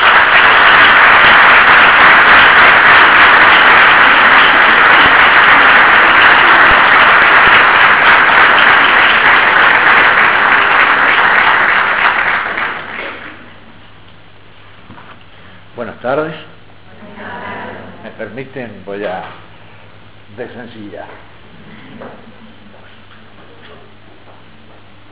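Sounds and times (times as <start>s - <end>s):
lecture audience clapping to welcome the speaker: 0.0s - 13.6s
speech: 16.0s - 16.4s, 18.4s - 19.4s, 20.3s - 21.3s.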